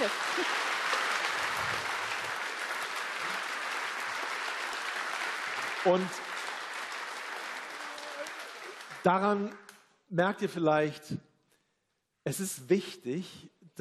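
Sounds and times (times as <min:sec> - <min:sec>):
speech: 0:00.0 - 0:00.6, 0:05.8 - 0:06.2, 0:09.0 - 0:11.3, 0:12.2 - 0:13.7
audience applause: 0:00.0 - 0:09.6.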